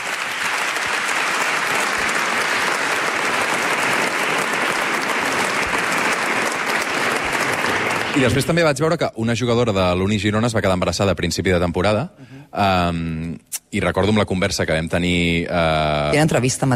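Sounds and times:
audience applause: 0.0 - 8.9
speech: 8.2 - 16.7.

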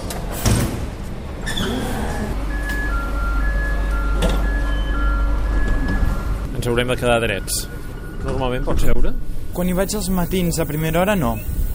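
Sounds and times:
commuter train rumbling in: 0.0 - 11.7
train door beeps: 2.4 - 9.2
speech: 6.6 - 11.6.

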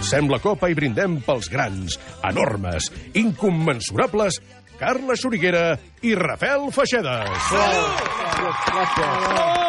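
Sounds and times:
speech: 0.1 - 9.6
applause: 7.2 - 9.6.

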